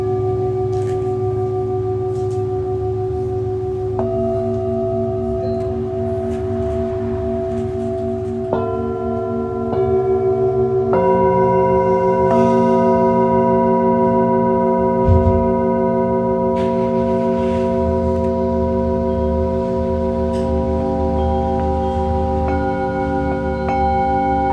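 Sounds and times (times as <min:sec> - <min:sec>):
Tibetan singing bowls ringing: 0:00.0 - 0:24.5.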